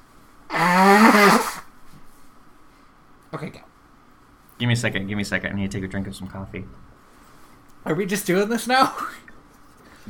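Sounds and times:
person blowing nose: 0.5 - 1.7
speech: 3.4 - 3.6, 4.6 - 6.9, 7.8 - 9.2.

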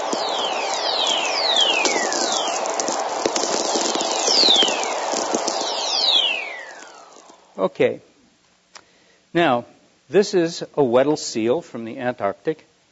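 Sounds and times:
thunderstorm lightning energy whistles on low-frequency radio receiver: 0.0 - 7.8
crackling and popping radio static: 0.0 - 8.6
speech: 7.6 - 8.1, 9.3 - 12.7.

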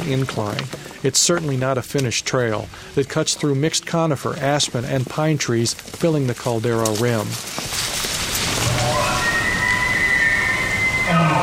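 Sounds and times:
speech: 0.1 - 8.1
elk calling: 8.6 - 11.4.

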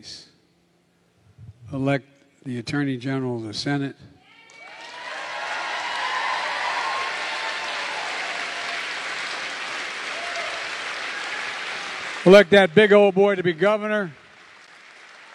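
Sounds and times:
speech: 0.0 - 0.2, 1.7 - 4.1, 12.2 - 14.2
crowd cheering at rally: 4.3 - 13.6
large crowd applauding at rally: 4.4 - 15.3.

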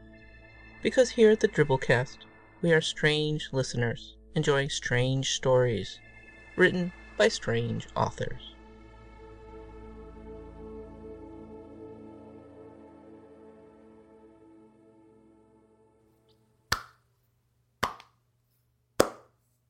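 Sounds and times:
speech: 0.8 - 6.0, 6.6 - 8.5
slow golf clap: 16.7 - 17.0, 17.8 - 18.1, 19.0 - 19.3.

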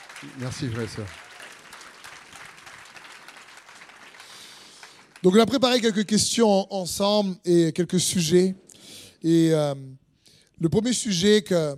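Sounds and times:
church congregation applauding: 0.0 - 6.1
speech: 0.2 - 1.3, 5.2 - 8.6, 9.2 - 10.0, 10.6 - 11.7.

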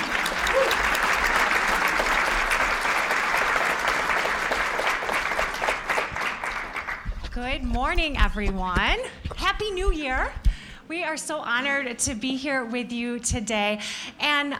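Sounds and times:
audience applause: 0.0 - 7.3
speech: 7.6 - 14.5.

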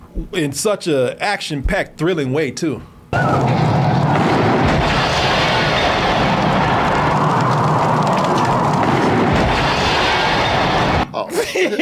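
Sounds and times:
speech: 0.2 - 3.6
volcano eruption in a video game: 3.2 - 11.1
laughter: 11.2 - 11.8.

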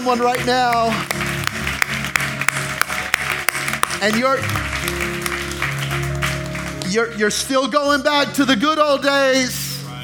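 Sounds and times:
speech: 0.0 - 1.2, 4.0 - 5.4, 6.9 - 9.6
audience clapping: 0.0 - 7.2.

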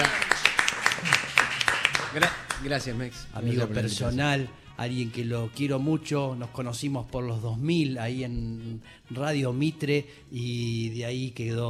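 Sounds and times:
loud applause: 0.0 - 2.6
speech: 2.1 - 11.6.

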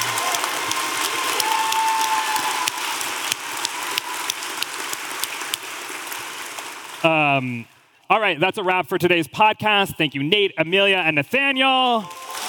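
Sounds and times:
audience applause: 0.0 - 7.6, 12.0 - 12.4
speech: 7.0 - 12.2.

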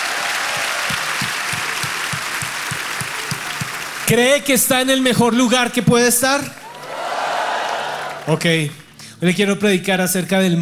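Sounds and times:
audience applause: 0.0 - 5.3, 6.4 - 8.9
speech: 4.1 - 6.6, 8.3 - 10.6.

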